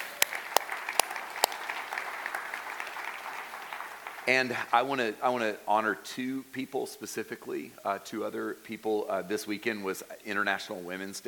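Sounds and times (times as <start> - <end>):
crowd applauding: 0.0 - 4.9
speech: 4.3 - 11.2.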